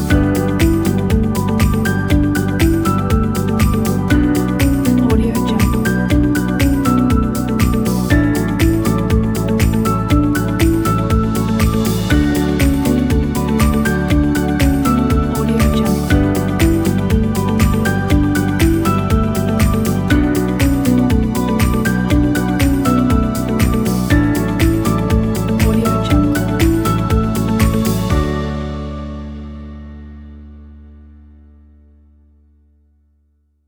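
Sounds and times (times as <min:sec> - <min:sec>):
corporate advertising presentation music: 0:00.0 - 0:30.6.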